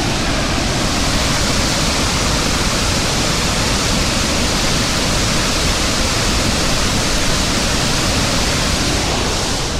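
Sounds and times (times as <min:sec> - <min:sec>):
St. Anne Falls, a 75-meter-high waterfall, roaring: 0:00.0 - 0:09.7.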